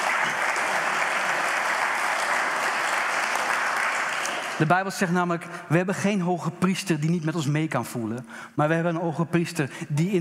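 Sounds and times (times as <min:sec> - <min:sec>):
church audience applause: 0:00.0 - 0:04.7
speech: 0:04.6 - 0:10.1.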